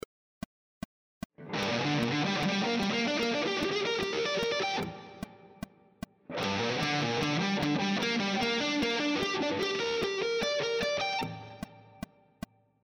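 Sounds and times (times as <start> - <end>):
guitar triad arpeggio sequences: 1.4 - 5.6, 6.3 - 11.8.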